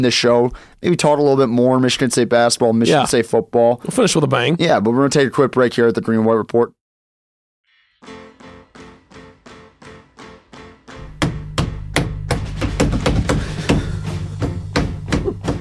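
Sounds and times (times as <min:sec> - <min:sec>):
speech: 0:00.0 - 0:06.8
drumming on a countertop: 0:11.0 - 0:15.5.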